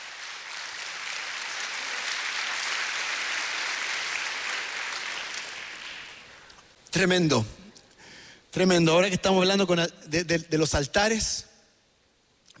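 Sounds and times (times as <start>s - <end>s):
audience applauding: 0.0s - 6.5s
speech: 7.0s - 7.6s, 8.5s - 11.5s.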